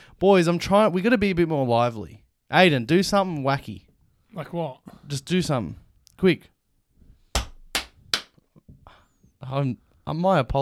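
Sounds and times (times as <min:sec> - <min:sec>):
speech: 0:00.2 - 0:06.5, 0:09.4 - 0:10.6
hand clapping: 0:07.4 - 0:08.4.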